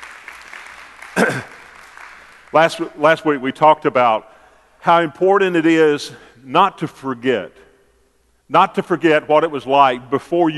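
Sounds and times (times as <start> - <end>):
audience praise clapping: 0.0 - 3.0
speech: 1.2 - 1.5, 2.6 - 7.6, 8.5 - 10.5.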